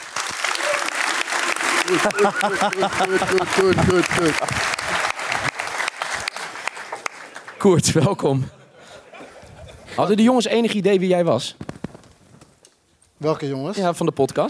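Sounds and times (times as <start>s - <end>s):
audience applause: 0.0s - 7.6s
laughter: 1.6s - 5.1s, 8.3s - 10.0s
speech: 1.9s - 4.8s, 7.6s - 8.6s, 10.0s - 11.6s, 13.2s - 14.4s.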